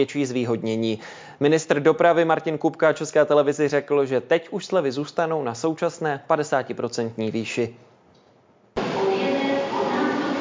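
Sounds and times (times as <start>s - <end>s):
speech: 0.0s - 7.9s
crowd murmuring in the main railway station hall in Prague: 8.8s - 10.3s.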